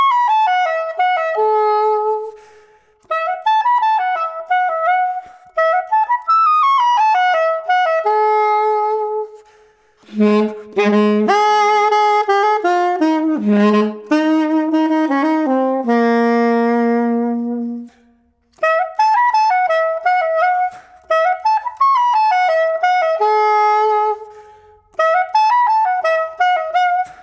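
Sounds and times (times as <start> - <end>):
saxophone: 0.0 - 27.2.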